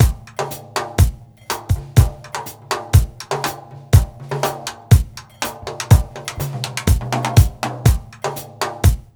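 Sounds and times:
roots disco beat: 0.0s - 9.1s.

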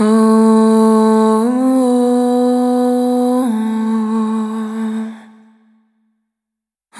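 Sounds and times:
single voice melodic loops: 0.0s - 5.5s.

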